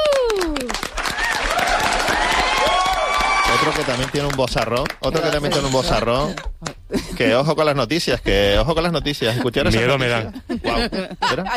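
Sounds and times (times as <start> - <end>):
rising cheers or whistles: 0.0 - 3.8
falling whoop: 0.0 - 4.0
audience clapping: 0.0 - 7.0
speech: 3.8 - 11.5
laughter: 5.2 - 7.5, 9.0 - 11.5.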